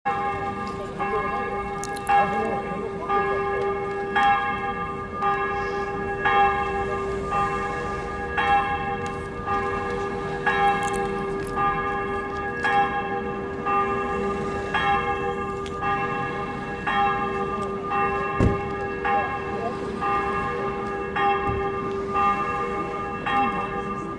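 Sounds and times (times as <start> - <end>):
bells of Katharien: 0.1 - 24.1.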